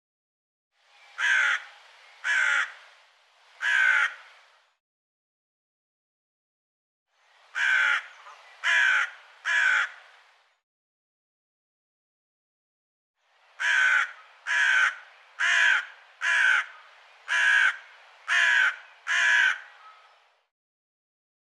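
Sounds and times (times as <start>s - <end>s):
bird cawing: 1.2s - 2.8s, 3.6s - 4.4s, 7.5s - 10.1s, 13.6s - 20.2s.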